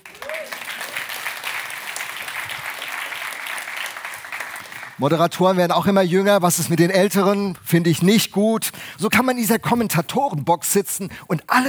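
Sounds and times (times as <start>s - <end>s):
audience applause: 0.0s - 5.5s
speech: 5.0s - 11.6s.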